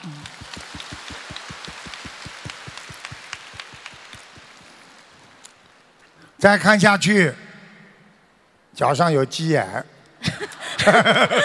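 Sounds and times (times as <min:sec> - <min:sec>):
applause: 0:00.0 - 0:05.4
speech: 0:06.4 - 0:07.4, 0:08.8 - 0:09.9, 0:10.8 - 0:11.4
laughter: 0:10.2 - 0:11.4.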